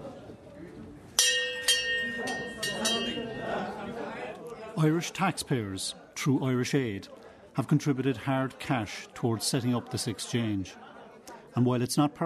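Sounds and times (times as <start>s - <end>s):
trading floor bell ringing to open session: 1.2s - 3.7s
speech: 4.8s - 10.9s, 11.5s - 12.2s.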